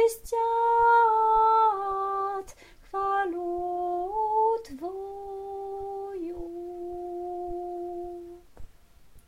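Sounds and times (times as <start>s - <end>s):
soprano singing: 0.0s - 8.6s.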